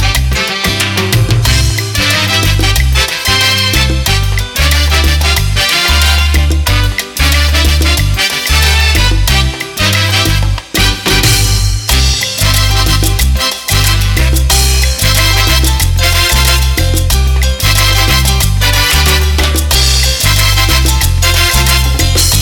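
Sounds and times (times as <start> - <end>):
accordion on Roland BK7m: 0.0 - 22.3.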